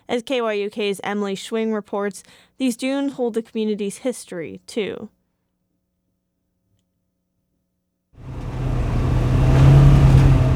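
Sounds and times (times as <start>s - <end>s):
speech: 0.1s - 5.2s
side-by-side off-road vehicle accelerating: 8.2s - 10.5s.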